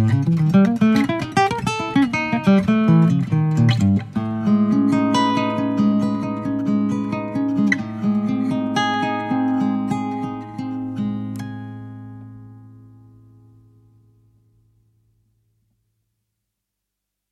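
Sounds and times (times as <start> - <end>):
archtop nylon string guitar playing in a studio recording: 0.0 - 14.6.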